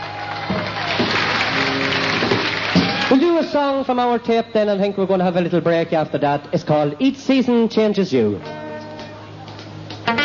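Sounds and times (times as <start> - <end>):
crowd clapping: 0.0 - 3.7, 8.8 - 10.1
speech: 3.1 - 8.6.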